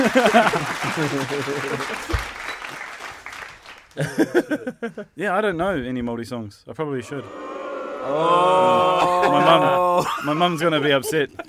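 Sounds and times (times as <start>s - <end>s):
laughter: 0.0s - 2.3s, 4.0s - 5.1s, 8.2s - 11.4s
speech: 0.0s - 2.4s, 4.0s - 11.4s
round of applause: 0.0s - 4.1s.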